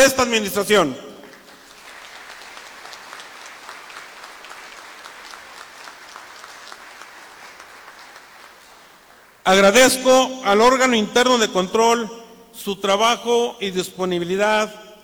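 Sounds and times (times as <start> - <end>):
speech: 0.0 - 1.1, 9.5 - 14.8
audience applause: 1.2 - 9.4.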